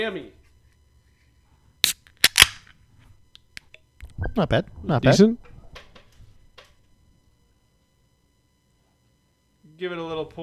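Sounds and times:
speech: 0.0 - 0.4, 4.2 - 5.5, 9.8 - 10.4
beer can cracked open with fizzing hiss: 1.8 - 2.7.

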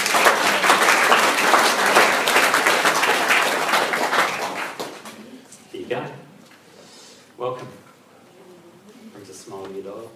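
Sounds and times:
audience applause: 0.0 - 5.3.

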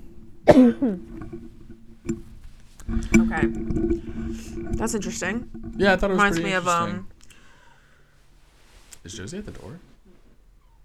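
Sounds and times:
person coughing from a throat tickle: 0.4 - 1.0
speech: 0.5 - 2.2, 3.0 - 7.1, 9.0 - 9.9.

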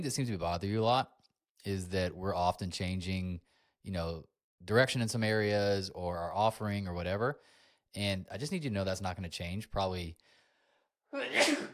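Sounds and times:
speech: 0.0 - 10.4, 11.1 - 11.7
sneeze: 11.2 - 11.7.

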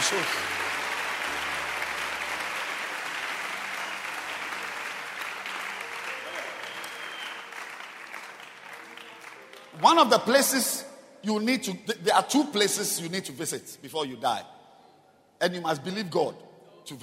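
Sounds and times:
church congregation clapping during a sermon: 0.0 - 10.8
speech: 0.1 - 0.6, 9.8 - 14.6, 15.4 - 17.0.

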